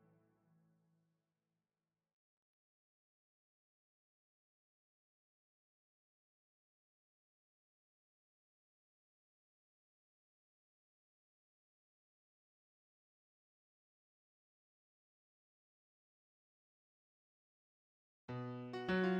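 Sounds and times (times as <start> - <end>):
piano piece: 18.3 - 19.1.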